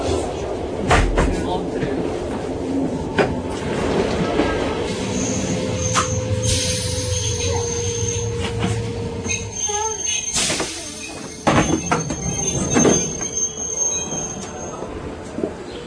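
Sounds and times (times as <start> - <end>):
train rolling rumble at Montreux railway station: 0.0 - 15.8
train wheels squealing at Montreux railway station: 5.1 - 15.0
people talking: 9.6 - 11.3.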